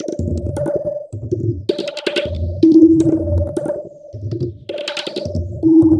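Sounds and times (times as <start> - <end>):
tablas: 0.0 - 5.9.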